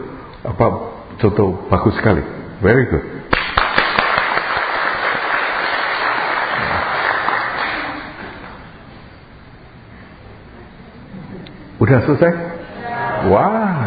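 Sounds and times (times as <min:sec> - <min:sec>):
speech: 0:00.4 - 0:03.2, 0:11.9 - 0:12.5, 0:13.2 - 0:13.8
audience applause: 0:03.4 - 0:08.5.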